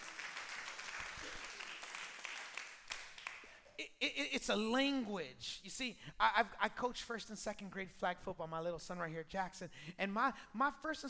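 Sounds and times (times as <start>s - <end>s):
audience clapping hands: 0.0s - 3.6s
speech: 3.8s - 11.0s.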